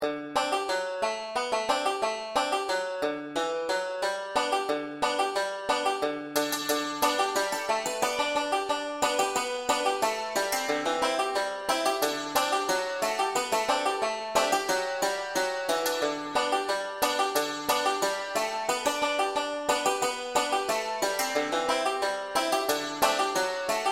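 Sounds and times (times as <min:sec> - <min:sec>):
folk tune melody: 0:00.0 - 0:23.9.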